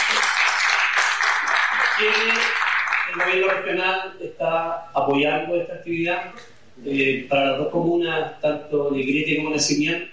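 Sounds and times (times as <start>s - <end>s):
audience applause at a regional community event: 0.0s - 3.6s
speech: 2.0s - 10.1s.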